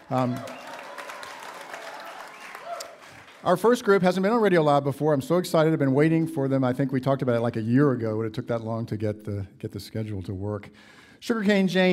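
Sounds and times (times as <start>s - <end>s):
large crowd applause in a museum: 0.0s - 3.8s
speech: 0.1s - 0.6s, 3.4s - 11.9s.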